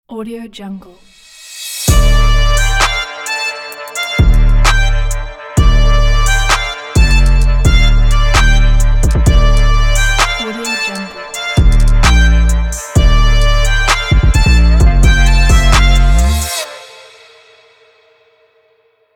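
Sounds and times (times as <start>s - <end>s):
aggressive hard urban trap logo jingle: 1.4s - 17.5s.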